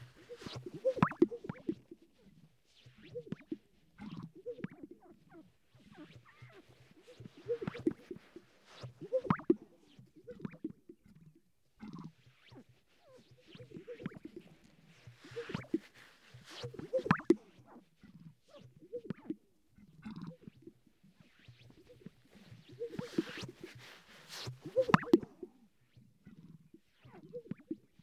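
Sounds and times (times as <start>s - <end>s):
sage-grouse display popping and bubbling: 0.1s - 11.2s, 13.4s - 17.5s, 18.6s - 25.5s, 26.2s - 28.0s.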